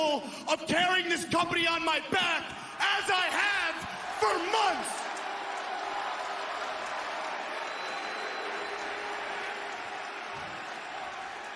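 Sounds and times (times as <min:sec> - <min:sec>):
speech: 0:00.0 - 0:05.0
crowd booing: 0:02.5 - 0:11.5
crowd clapping: 0:03.8 - 0:11.5.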